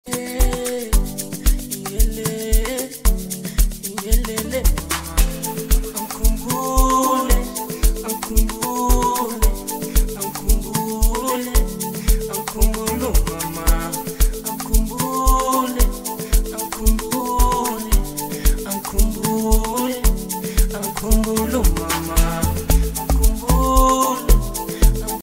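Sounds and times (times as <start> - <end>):
amapiano music mix: 0.1 - 25.2.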